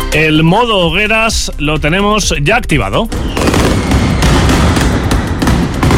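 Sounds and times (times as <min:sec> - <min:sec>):
speech: 0:00.2 - 0:03.8
Mascletà firecrackers fired in Plaza de los Luceros, Alicante: 0:03.1 - 0:05.9.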